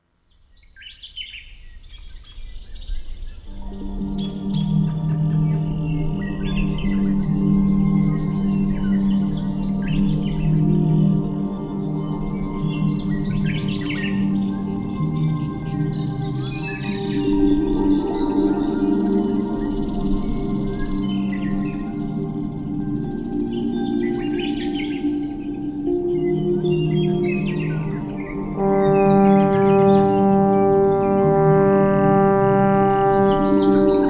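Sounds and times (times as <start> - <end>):
relaxing nature melodies: 1.0 - 34.0.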